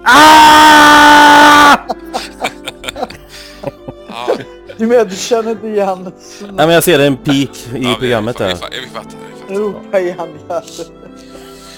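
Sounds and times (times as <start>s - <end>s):
person shouting to mark an edit point in a recording: 0.0s - 1.8s
laughter: 1.5s - 4.8s
speech: 4.8s - 11.0s.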